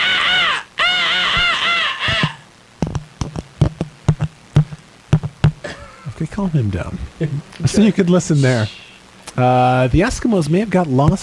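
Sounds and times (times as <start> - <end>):
phone monkey toy screeching: 0.0 - 2.5, 8.4 - 9.0
toy monkey punching microphone: 2.1 - 5.7
speech: 6.4 - 8.8, 9.4 - 11.2.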